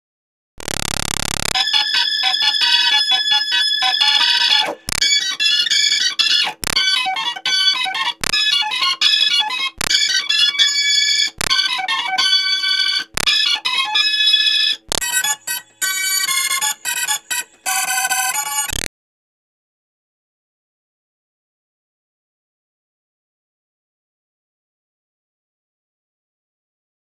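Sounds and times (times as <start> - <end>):
Hammond B3 organ: 1.6 - 18.7.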